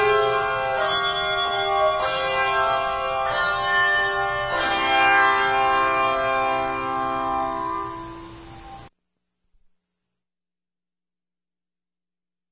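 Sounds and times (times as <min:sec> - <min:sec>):
bell choir: 0:00.0 - 0:08.9.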